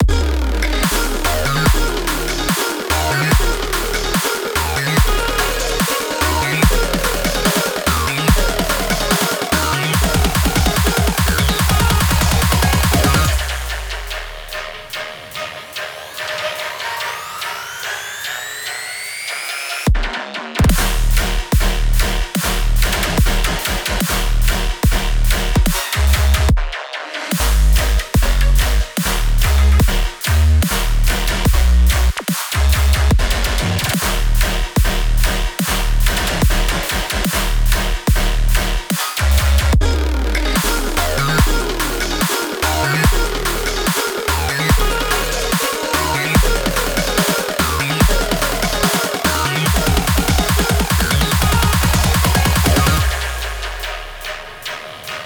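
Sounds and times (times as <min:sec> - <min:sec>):
heavy electronic tearout music: 0:00.0 - 0:55.2.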